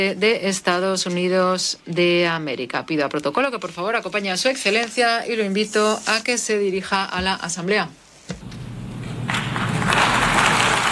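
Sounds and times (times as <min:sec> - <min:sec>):
speech: 0:00.0 - 0:08.6
audience applauding as speaker enters: 0:09.0 - 0:10.9.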